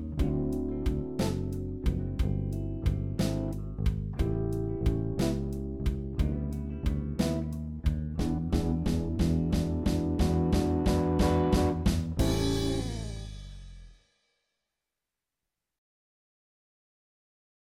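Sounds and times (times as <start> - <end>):
blues guitar backing track: 0.0 - 13.2.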